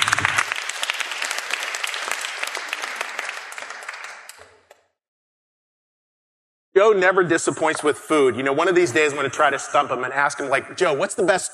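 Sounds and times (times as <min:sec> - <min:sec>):
small group applauding: 0:00.0 - 0:05.0
speech: 0:06.8 - 0:11.5.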